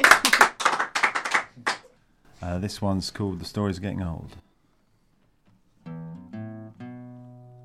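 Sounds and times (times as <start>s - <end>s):
applause from a small audience: 0.0s - 1.9s
speech: 2.4s - 4.5s.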